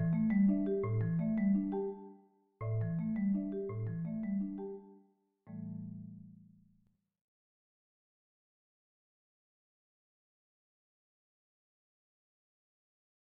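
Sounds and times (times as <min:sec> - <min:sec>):
marimba duet: 0:00.0 - 0:05.0.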